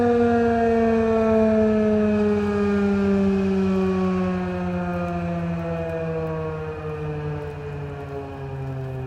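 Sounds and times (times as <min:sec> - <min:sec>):
fire rescue siren: 0:00.0 - 0:09.0.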